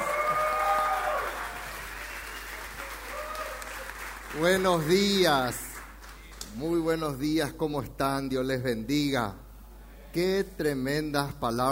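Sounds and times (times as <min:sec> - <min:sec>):
audience applause: 0:00.0 - 0:06.4
speech: 0:04.4 - 0:05.7, 0:06.6 - 0:09.4, 0:10.1 - 0:11.7.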